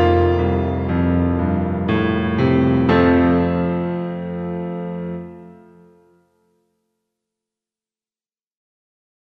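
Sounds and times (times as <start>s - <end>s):
piano: 0.0s - 7.1s.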